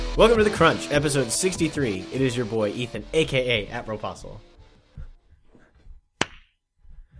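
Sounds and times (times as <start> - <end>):
speech: 0.2 - 4.5
shuffling: 4.5 - 6.1
hand clap: 6.2 - 6.5.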